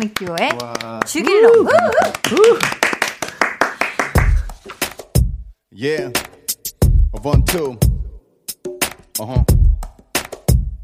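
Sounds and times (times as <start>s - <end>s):
speech: 0.0s - 2.9s, 5.8s - 6.3s, 7.1s - 7.9s, 9.2s - 9.7s
audience clapping: 0.0s - 5.0s.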